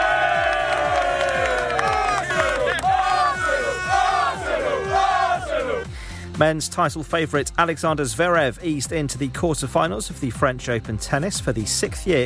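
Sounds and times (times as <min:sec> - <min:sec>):
large crowd of football supporters chanting and cheering: 0:00.0 - 0:05.9
steady thumping beat: 0:00.0 - 0:06.0
speech: 0:06.4 - 0:12.2.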